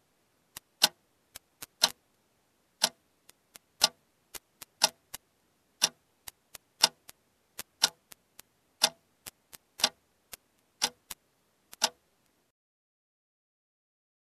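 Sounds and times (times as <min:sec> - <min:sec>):
clock: 0:00.6 - 0:02.0, 0:02.8 - 0:05.2, 0:05.8 - 0:08.2, 0:08.8 - 0:12.0.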